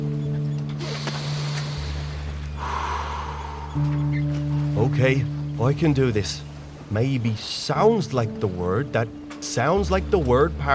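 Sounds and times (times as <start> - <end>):
steady low hum: 0.0 - 10.7
deep breath: 0.8 - 3.9
speech: 3.8 - 4.0, 4.8 - 10.7.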